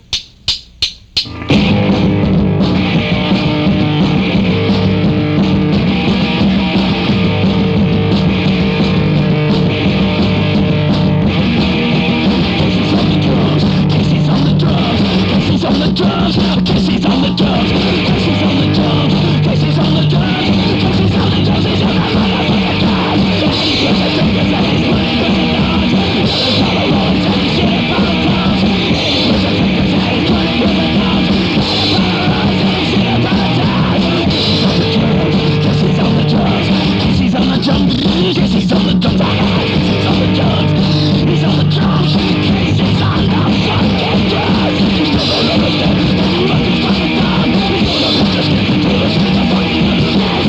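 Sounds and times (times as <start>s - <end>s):
drums: 0.0s - 50.4s.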